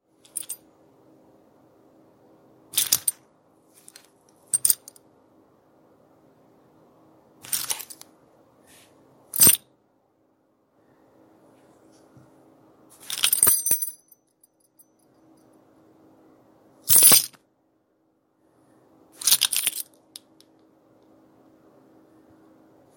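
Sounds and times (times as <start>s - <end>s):
keys picked up: 0.3s - 0.6s, 2.8s - 3.2s, 3.8s - 5.0s, 7.4s - 8.0s, 13.0s - 14.8s, 19.2s - 20.4s.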